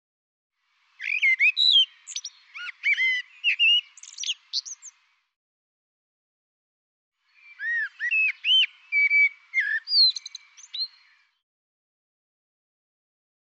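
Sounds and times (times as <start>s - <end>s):
bird song with chirps whistles and trilled notes: 0.7s - 5.3s, 7.2s - 11.4s.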